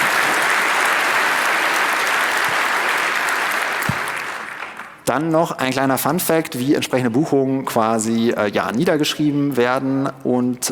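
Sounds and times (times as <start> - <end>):
applause: 0.0 - 5.1
speech: 5.1 - 10.6.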